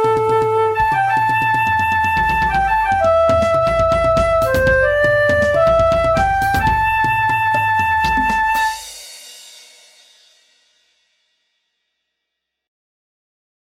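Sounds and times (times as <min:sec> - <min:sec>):
flute song: 0:00.0 - 0:08.9.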